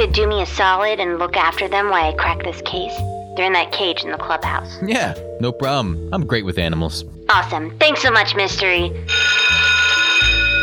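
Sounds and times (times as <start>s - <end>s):
speech: 0.0s - 9.5s
bell ringing loudly and continuously: 9.1s - 10.6s.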